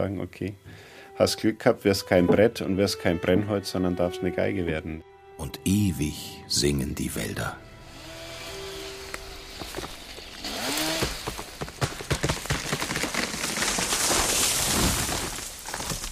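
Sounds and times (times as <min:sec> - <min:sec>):
speech: 0:00.0 - 0:07.7
creaking and rushing of a falling beech tree: 0:07.9 - 0:16.1.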